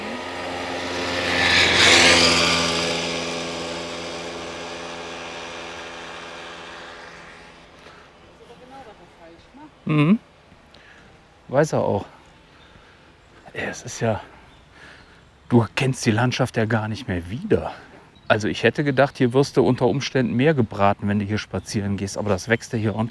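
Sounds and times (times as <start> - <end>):
moped riding past along a track: 0.0 - 9.1
speech: 9.9 - 10.2, 11.5 - 12.1, 13.7 - 14.3, 15.5 - 23.0.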